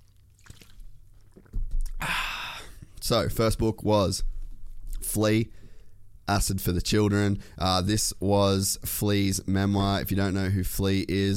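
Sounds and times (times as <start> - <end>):
small wet clicks: 0.0 - 2.0
person drinking water in quiet sips and swallows: 0.0 - 3.0
speech: 3.0 - 4.3, 5.1 - 5.6, 6.3 - 11.3.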